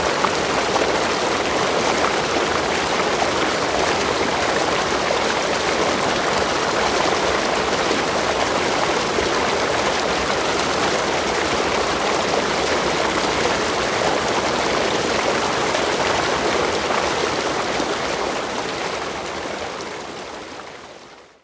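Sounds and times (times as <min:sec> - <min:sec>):
waterfall: 0:00.0 - 0:21.4.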